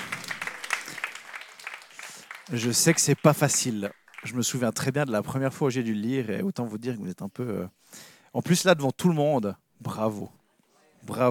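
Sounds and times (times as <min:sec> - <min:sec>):
audience applause: 0:00.0 - 0:04.7
speech: 0:02.5 - 0:10.4, 0:11.0 - 0:11.2.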